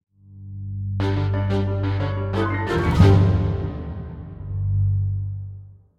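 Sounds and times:
combat theme music ending: 1.0s - 5.6s.

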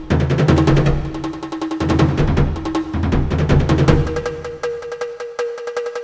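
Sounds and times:
jungle ambience: 0.1s - 5.9s.

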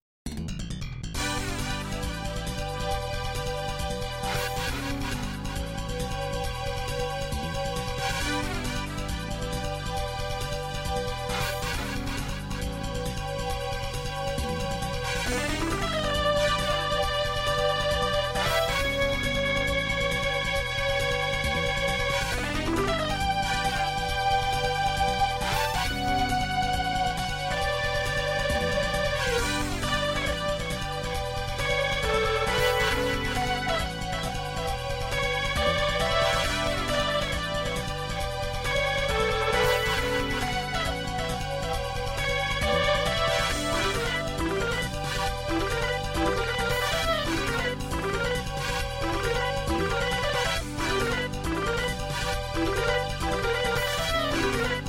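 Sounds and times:
MIDI music: 1.2s - 54.8s.

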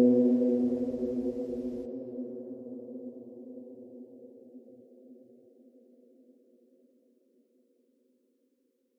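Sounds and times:
sequenced melody: 0.0s - 1.6s.

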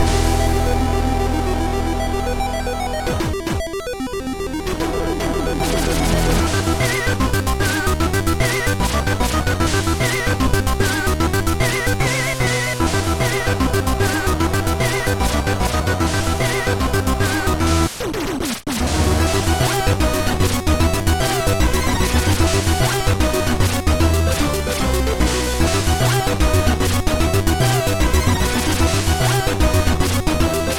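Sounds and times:
final boss music loop: 0.0s - 17.9s, 18.8s - 30.7s.

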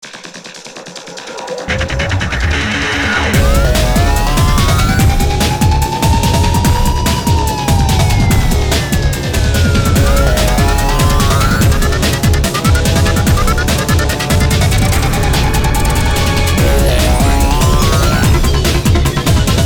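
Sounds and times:
music jingle: 0.6s - 19.6s.

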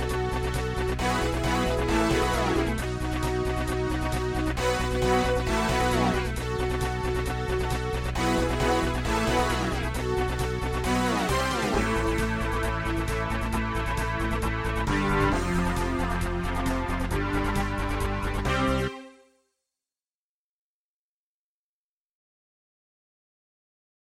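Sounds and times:
MIDI battle music: 0.0s - 19.1s.

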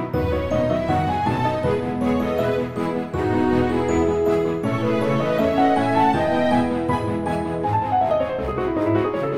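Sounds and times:
game menu music: 0.2s - 9.2s.

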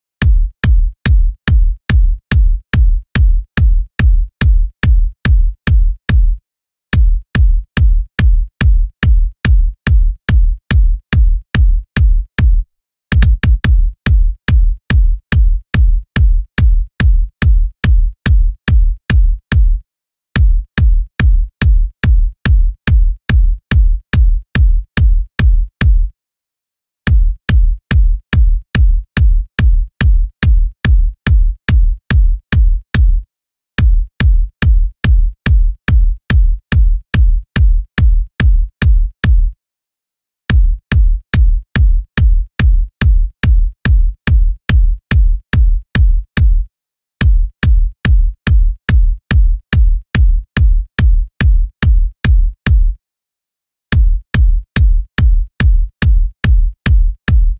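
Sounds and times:
classic background music kick drum: 0.0s - 6.4s, 7.0s - 19.8s, 20.4s - 26.2s, 27.1s - 39.6s, 40.5s - 53.0s, 53.9s - 57.5s.

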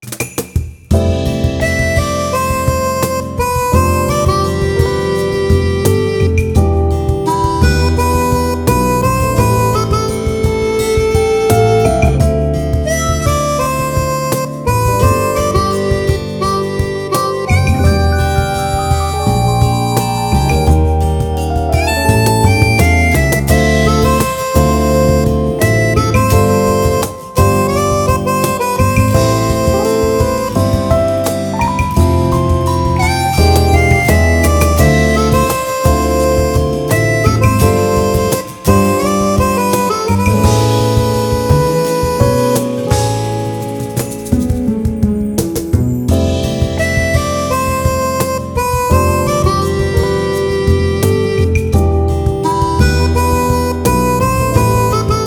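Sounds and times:
music at an event: 0.0s - 55.2s.

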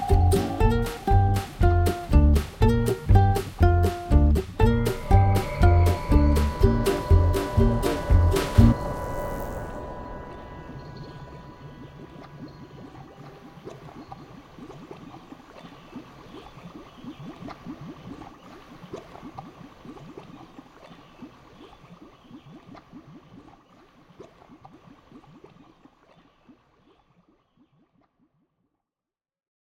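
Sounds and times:
Halloween ambience: 0.0s - 2.3s, 3.7s - 14.9s.

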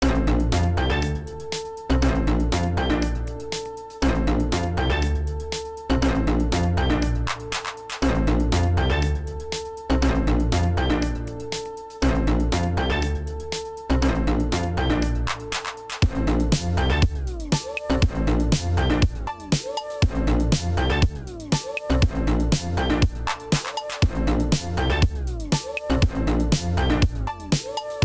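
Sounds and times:
funk music: 0.0s - 28.0s.

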